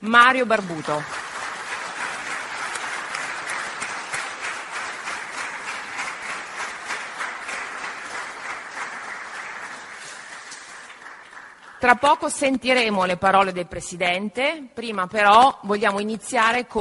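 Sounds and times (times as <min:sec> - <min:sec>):
speech: 0:00.0 - 0:01.2, 0:11.8 - 0:16.8
audience applause: 0:00.6 - 0:11.8.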